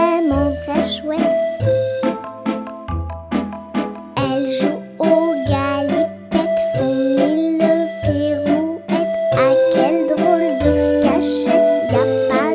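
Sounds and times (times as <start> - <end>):
sung waltz: 0.0 - 12.5.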